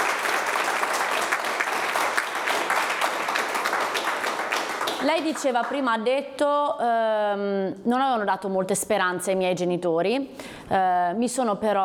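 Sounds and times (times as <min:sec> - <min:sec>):
audience applause: 0:00.0 - 0:05.8
speech: 0:05.0 - 0:11.8.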